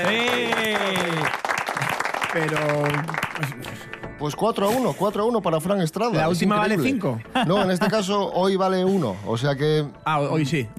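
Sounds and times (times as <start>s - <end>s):
audience applause: 0.0s - 4.0s
speech: 2.3s - 10.7s.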